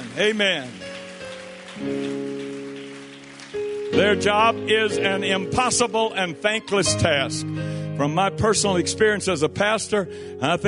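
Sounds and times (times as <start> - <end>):
audience clapping: 0.0 - 7.0
speech: 0.2 - 0.8, 1.8 - 2.6, 4.0 - 10.6.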